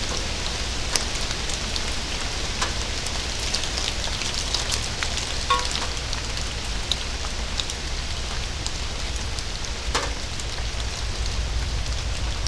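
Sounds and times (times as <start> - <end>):
rain recorded binaurally: 0.0 - 12.4.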